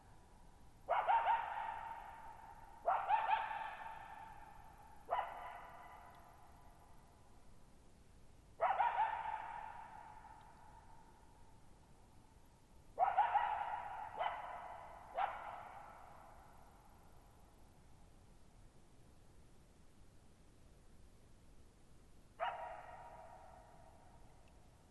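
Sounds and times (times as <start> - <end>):
coyote barking: 0.9 - 6.2, 8.6 - 10.5, 13.0 - 16.4, 22.4 - 23.9.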